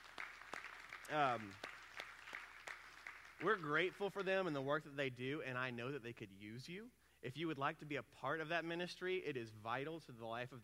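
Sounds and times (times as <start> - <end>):
round of applause: 0.0 - 4.3
speech: 1.1 - 1.7, 3.4 - 10.6.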